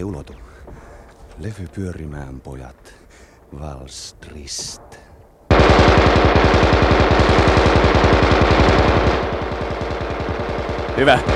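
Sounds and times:
speech: 0:00.0 - 0:00.4, 0:01.4 - 0:05.0, 0:11.0 - 0:11.3
machine gun firing a sustained rapid burst: 0:05.5 - 0:11.3.

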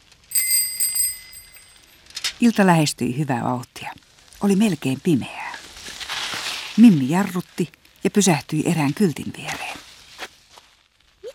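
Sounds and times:
bicycle bell ringing: 0:00.3 - 0:01.9
speech: 0:02.4 - 0:05.4, 0:06.8 - 0:09.7.

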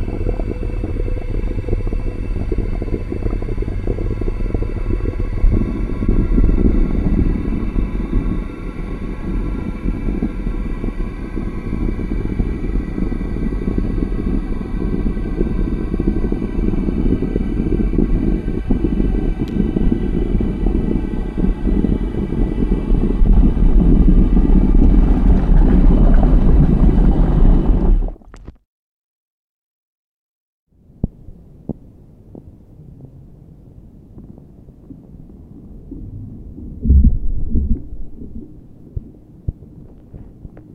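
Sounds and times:
low rumble from melting snow sounds: 0:00.0 - 0:28.5, 0:30.8 - 0:40.7.

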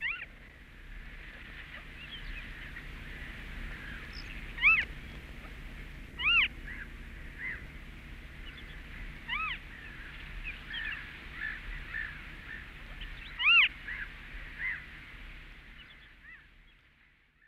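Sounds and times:
steady high-pitched hiss: 0:00.0 - 0:17.4
Western Marsh Harrier mewing calls: 0:03.1 - 0:05.6, 0:06.2 - 0:07.6, 0:09.2 - 0:14.8.

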